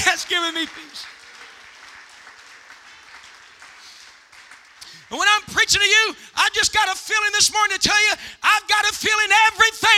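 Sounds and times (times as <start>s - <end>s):
crowd clapping hands: 0.0s - 5.9s
speech: 0.1s - 1.1s, 5.1s - 9.9s.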